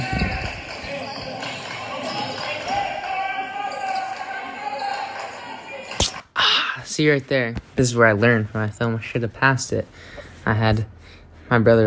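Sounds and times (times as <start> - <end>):
basketball bouncing during a high school varsity basketball game: 0.0 - 2.8
crowd noise at a high school varsity basketball game: 0.0 - 6.3
speech: 7.0 - 11.8.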